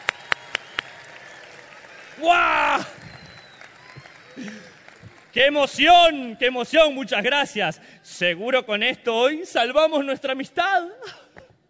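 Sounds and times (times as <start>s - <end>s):
audience applause: 0.0s - 6.3s
speech: 2.2s - 2.9s, 5.4s - 11.2s.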